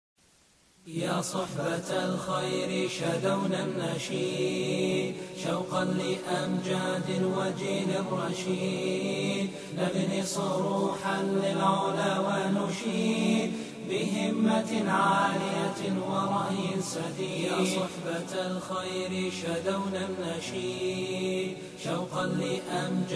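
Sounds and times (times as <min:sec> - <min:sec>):
unaccompanied nasheed vocals: 0:00.9 - 0:23.1.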